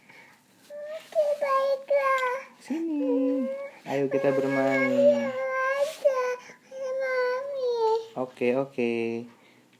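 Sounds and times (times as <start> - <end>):
child crying: 1.7 - 8.1
speech: 4.0 - 5.4, 8.4 - 9.4.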